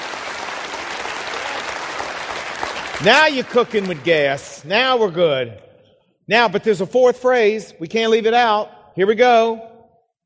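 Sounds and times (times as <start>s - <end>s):
audience round of applause: 0.0s - 4.5s
speech: 3.0s - 5.7s, 6.3s - 9.7s.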